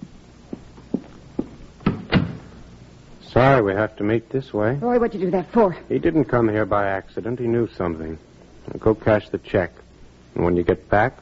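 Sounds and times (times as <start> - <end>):
door being closed: 1.8 - 2.5
speech: 3.3 - 11.2.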